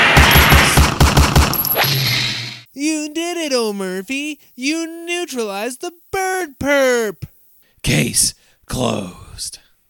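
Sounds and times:
gunfire from a firearm: 0.2s - 1.7s
hiss: 2.6s - 9.8s
speech: 4.6s - 6.1s, 7.8s - 9.6s.

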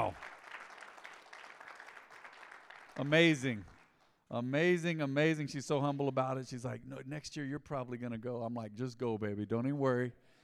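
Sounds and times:
audience clapping: 0.0s - 4.3s
speech: 3.0s - 3.7s, 4.3s - 10.2s.

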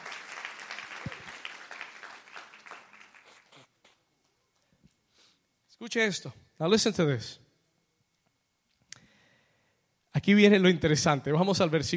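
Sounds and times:
hand clapping: 0.0s - 4.0s
speech: 5.8s - 7.4s, 10.3s - 11.9s.

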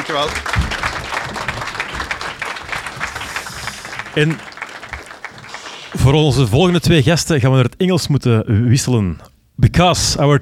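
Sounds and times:
audience applause: 0.0s - 6.8s
speech: 0.1s - 0.7s, 4.2s - 4.5s, 5.9s - 10.4s.

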